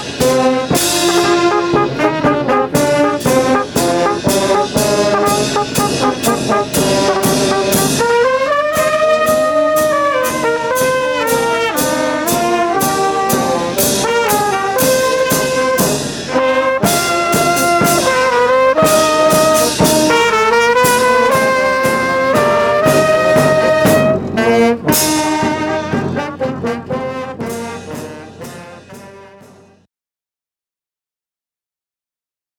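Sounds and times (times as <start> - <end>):
wind band playing a march: 0.0 - 29.9.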